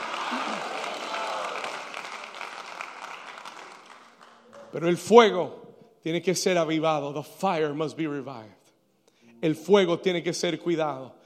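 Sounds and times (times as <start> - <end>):
large crowd clapping loudly: 0.0 - 5.0
speech: 4.7 - 8.6, 9.4 - 11.2.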